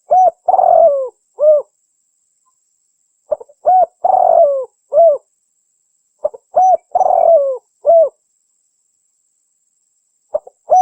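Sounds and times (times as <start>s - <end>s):
spotted dove cooing: 0.0s - 1.7s, 3.3s - 5.3s, 6.2s - 8.2s, 10.3s - 10.7s.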